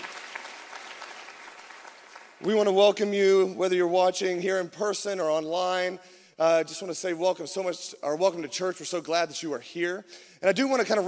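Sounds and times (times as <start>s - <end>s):
audience clapping hands: 0.0s - 2.8s
speech: 2.4s - 11.0s.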